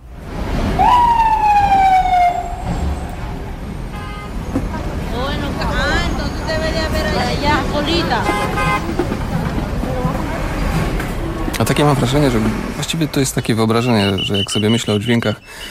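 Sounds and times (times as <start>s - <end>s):
steady roar of traffic in Times Square, Manhattan: 0.0s - 15.6s
police siren wailing in a falling sweep in Times Square, Manhattan: 0.8s - 3.4s, 13.7s - 15.6s
car horns tooting in Times Square: 2.2s - 4.9s, 5.8s - 9.3s, 11.6s - 15.6s
crowd chatter in Times Square: 4.5s - 15.6s
speech: 11.8s - 15.6s.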